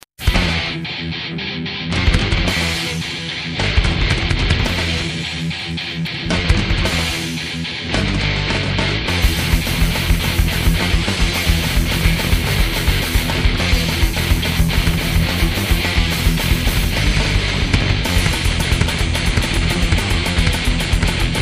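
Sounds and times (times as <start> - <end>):
rock music: 0.2 - 21.4.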